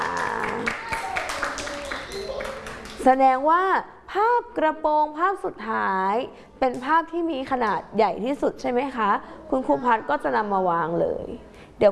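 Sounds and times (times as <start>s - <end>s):
children clapping hands: 0.0s - 3.1s
speech: 3.0s - 11.9s
children's voices chattering: 9.3s - 10.8s.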